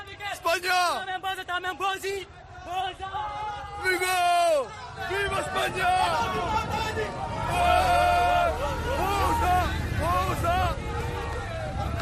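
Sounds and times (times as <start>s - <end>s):
speech: 0.6s - 10.9s
crowd of men shouting and cheering with joy: 2.0s - 12.0s.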